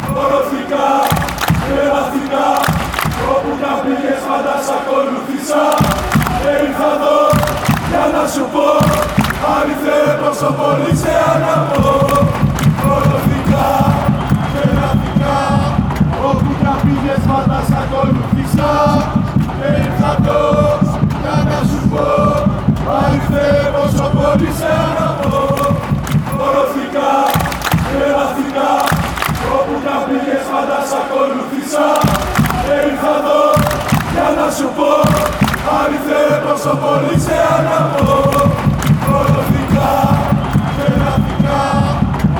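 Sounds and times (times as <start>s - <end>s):
chanting: 0.0s - 42.3s.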